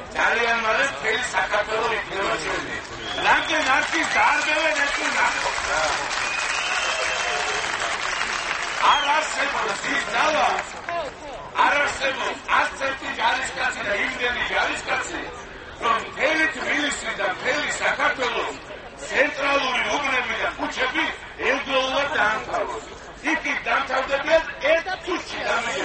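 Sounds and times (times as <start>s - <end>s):
chatter and voices: 0.0s - 25.8s
crowd applauding outside a television building at an opposition rally: 2.8s - 11.1s.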